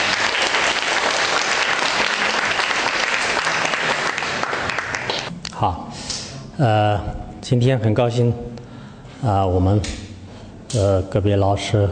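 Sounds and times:
warm audience applause: 0.0 - 5.3
speech: 5.6 - 5.8, 6.6 - 8.5, 9.2 - 10.0, 10.7 - 11.9.

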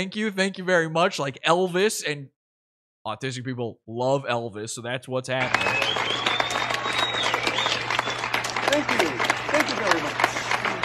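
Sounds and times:
speech: 0.0 - 2.4, 3.0 - 6.3
audience clapping: 5.4 - 10.8.

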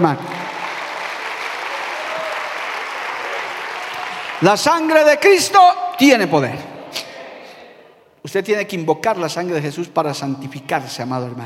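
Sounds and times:
speech: 0.0 - 0.4, 4.4 - 6.7, 8.2 - 11.4
audience applause: 0.0 - 5.1.

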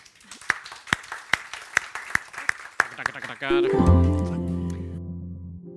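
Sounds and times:
audience applause: 0.0 - 4.6
speech: 3.0 - 4.5.

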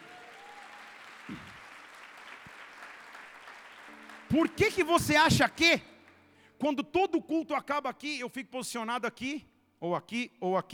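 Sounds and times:
audience applause: 0.0 - 6.2
speech: 4.3 - 5.9, 6.6 - 10.7.

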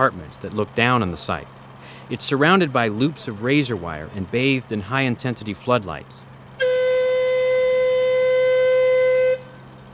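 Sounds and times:
speech: 0.0 - 6.3
warning whistle blown before dynamite blast: 6.6 - 9.6.

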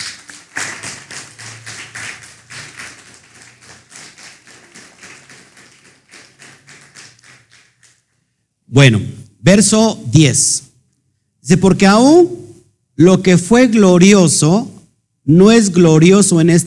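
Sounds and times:
crowd applauding: 0.0 - 8.0
speech: 8.7 - 10.7, 11.5 - 12.4, 13.0 - 16.6.

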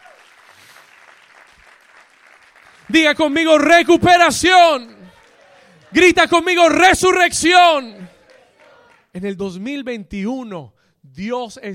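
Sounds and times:
audience applause: 0.0 - 3.2, 5.0 - 6.7, 7.5 - 9.1
speech: 2.9 - 5.0, 5.9 - 8.1, 9.2 - 11.7.

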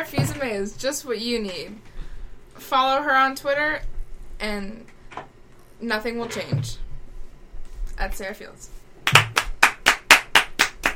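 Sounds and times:
speech: 0.0 - 1.9, 2.6 - 6.8, 8.0 - 9.2
hand clapping: 9.0 - 10.9.

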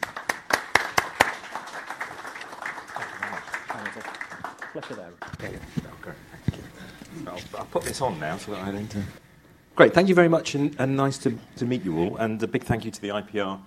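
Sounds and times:
audience applause welcoming a professor to a lecture: 0.0 - 5.6
speech: 4.8 - 9.2, 9.8 - 13.6.

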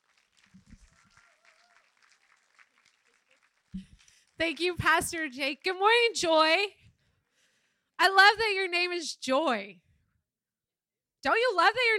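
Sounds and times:
faint audience clapping at a church morning gathering: 0.0 - 4.8
speech: 3.8 - 6.8, 8.0 - 9.8, 11.2 - 11.9.

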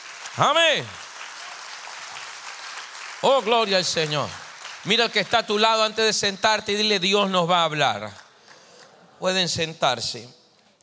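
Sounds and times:
audience applause: 0.0 - 5.9
speech: 0.4 - 1.0, 3.2 - 8.2, 9.2 - 10.4.

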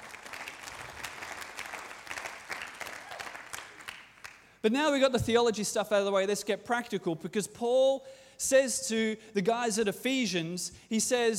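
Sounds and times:
audience applauding: 0.0 - 4.5
speech: 4.6 - 11.3.

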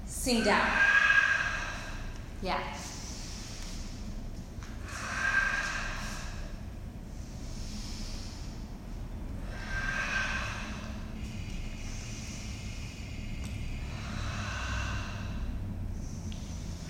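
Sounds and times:
low steady rumble: 0.0 - 16.8
speech: 0.2 - 0.9, 2.4 - 2.9
slow breathing during a basic yoga sequence: 0.2 - 16.8.

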